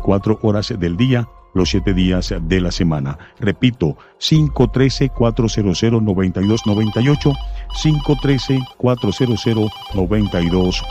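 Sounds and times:
speech: 0.1s - 10.8s
telephone ringing with an incoming call to a Spanish-language radio call-in show: 6.4s - 10.8s.

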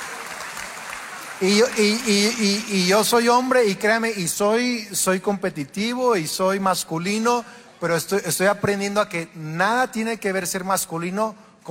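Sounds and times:
women in an audience applauding: 0.0s - 2.7s
speech: 1.4s - 11.6s.

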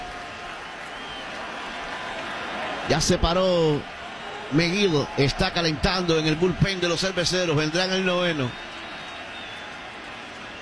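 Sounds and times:
baseball stadium crowd cheering and applause: 0.0s - 10.6s
speech: 2.9s - 3.9s, 4.5s - 8.6s.

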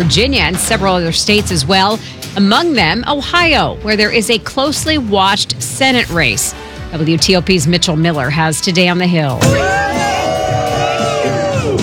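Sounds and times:
speech: 0.0s - 9.9s
Democratic supporters cheering for former Senator Sherrod Brown in Ohio: 9.4s - 11.8s.

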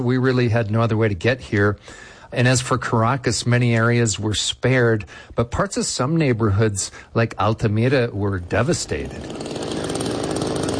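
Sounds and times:
speech: 0.0s - 9.8s
chainsaw cutting a tunnel through a collapsed high-rise apartment building: 8.4s - 10.7s.

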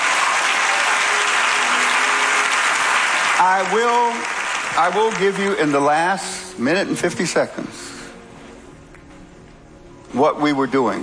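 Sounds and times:
audience applause: 0.0s - 5.9s
speech: 3.4s - 7.9s, 10.2s - 11.0s.

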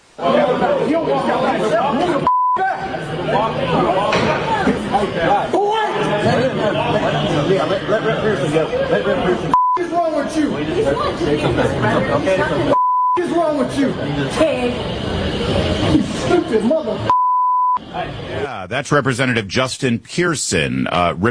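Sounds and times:
speech: 0.9s - 9.6s, 10.3s - 12.8s, 13.6s - 17.1s, 18.0s - 21.2s
censorship bleeps over profanity: 2.2s - 2.8s, 9.5s - 10.0s, 12.7s - 13.4s, 17.1s - 17.8s.

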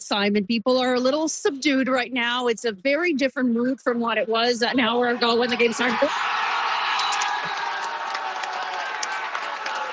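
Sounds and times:
speech: 0.1s - 6.4s
crowd cheering after a goal: 4.6s - 9.9s.

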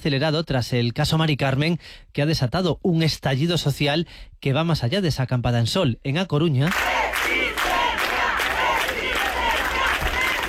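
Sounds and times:
speech: 0.0s - 7.3s
protest crowd chanting in unison: 6.7s - 10.4s.

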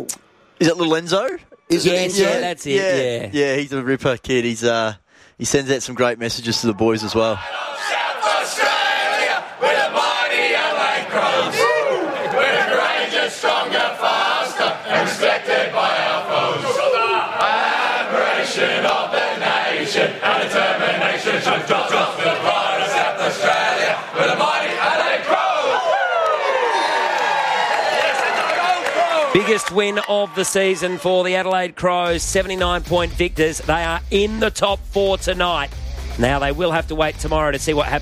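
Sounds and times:
speech: 0.1s - 7.8s, 29.4s - 38.0s
team group singing a club song after win: 7.4s - 26.0s
shouts and whoops: 11.5s - 12.4s, 25.7s - 31.0s
hands clapping: 18.8s - 19.0s.

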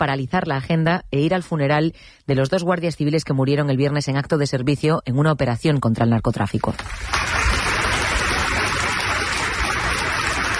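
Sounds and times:
speech: 0.0s - 7.5s
applause at a funeral tribute: 6.8s - 10.5s.

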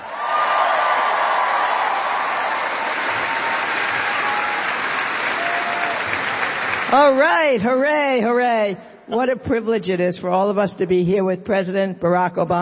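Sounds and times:
audience applause for historian and author Doris Kearns Goodwin: 0.0s - 7.0s
speech: 6.9s - 12.5s.

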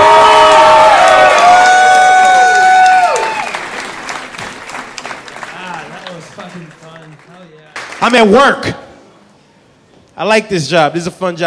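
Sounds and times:
audience whoops and shouting voices: 0.0s - 3.6s
comedy show audience applause: 0.0s - 8.4s
speech: 8.0s - 8.8s, 10.2s - 11.4s.

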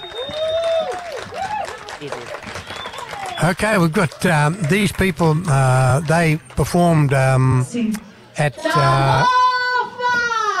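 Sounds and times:
audience applause for Samoan dancers: 0.0s - 7.4s
speech: 2.0s - 2.4s, 3.4s - 9.4s.

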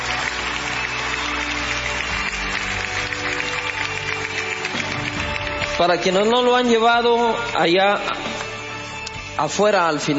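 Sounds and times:
audience applause: 0.0s - 6.9s
speech: 5.8s - 8.3s, 9.4s - 10.1s.

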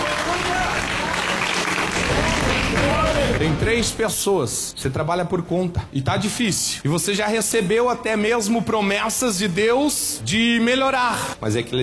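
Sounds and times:
church audience applauding: 0.0s - 3.5s
speech: 3.4s - 11.8s.

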